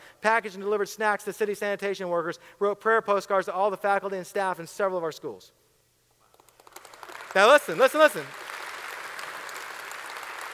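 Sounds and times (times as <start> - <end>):
speech: 0.2 - 5.6, 7.4 - 8.4
audience clapping: 6.3 - 10.5.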